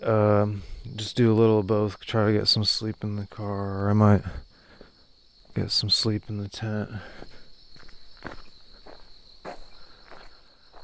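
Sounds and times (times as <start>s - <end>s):
speech: 0.0s - 4.5s, 5.6s - 7.3s
crickets chirping: 0.0s - 10.8s
footsteps walking through park at night: 7.0s - 10.8s.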